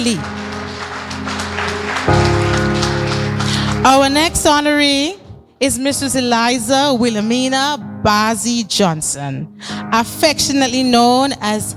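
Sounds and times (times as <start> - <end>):
speech: 0.0 - 0.4, 3.8 - 11.7
audience round of applause: 0.0 - 3.8.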